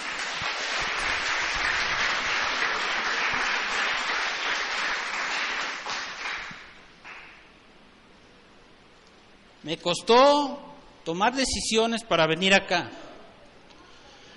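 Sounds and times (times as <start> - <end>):
large crowd applause: 0.0 - 7.4
speech: 9.6 - 13.0.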